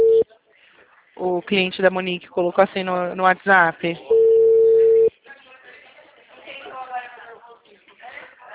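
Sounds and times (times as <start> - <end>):
telephone ringback tone while placing a phone call: 0.0 - 0.2, 4.1 - 5.1
speech: 1.2 - 4.1.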